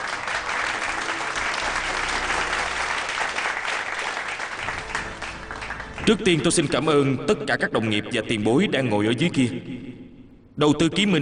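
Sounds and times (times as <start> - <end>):
audience applause: 0.0 - 6.9
speech: 6.1 - 10.0, 10.6 - 11.2.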